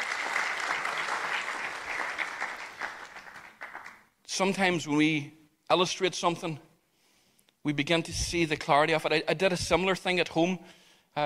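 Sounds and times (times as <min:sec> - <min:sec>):
audience applause: 0:00.0 - 0:04.0
speech: 0:04.4 - 0:06.7, 0:07.6 - 0:11.2.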